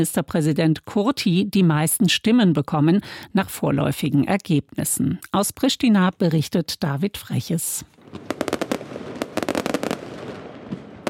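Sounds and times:
speech: 0.0 - 8.4
fireworks exploding at election celebration: 8.0 - 11.0.

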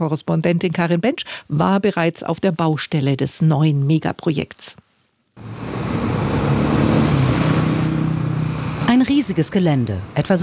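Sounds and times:
speech: 0.0 - 6.2, 9.0 - 10.4
construction machines levelling the ground: 5.4 - 9.2
trucks transporting stones and gravel: 5.4 - 10.4.

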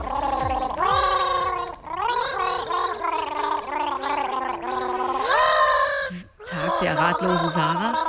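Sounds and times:
voice gargling a melody: 0.0 - 8.0
speech: 6.8 - 8.0.

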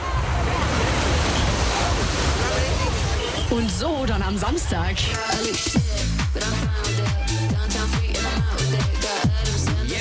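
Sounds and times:
waves at the lido on Losheim lake: 0.0 - 6.5
speech: 3.5 - 9.3.

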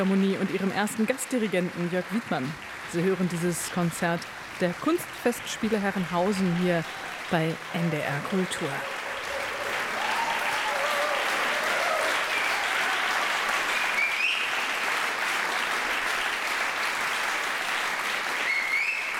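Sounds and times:
speech: 0.0 - 9.0
large concert audience applause: 0.8 - 19.1
faint whoops and cheers: 8.9 - 14.6, 18.4 - 19.1.

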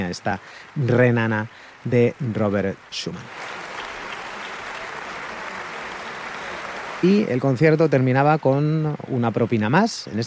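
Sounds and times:
audience applause for an orchestra: 0.0 - 10.2
speech: 0.1 - 3.5, 7.0 - 10.2.

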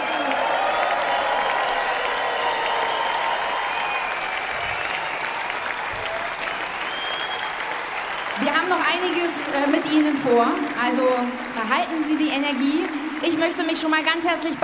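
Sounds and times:
cheers and whistles: 0.0 - 9.1
concert audience applause: 0.0 - 14.6
speech: 9.1 - 14.6.

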